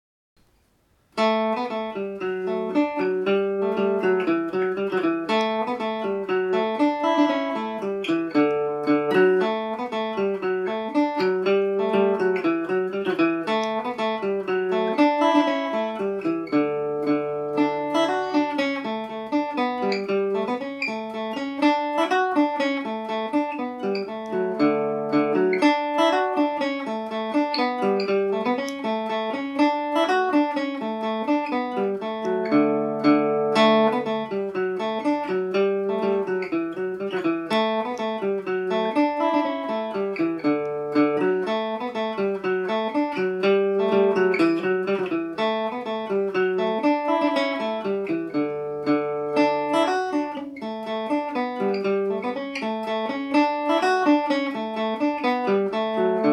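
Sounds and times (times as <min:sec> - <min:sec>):
Irish mandolin playing in D major: 0:01.2 - 0:56.3.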